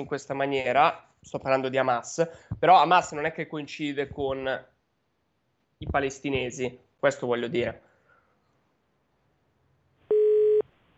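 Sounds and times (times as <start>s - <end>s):
speech: 0.0s - 4.7s, 5.8s - 7.8s
telephone busy tone after dropped call: 10.1s - 10.7s.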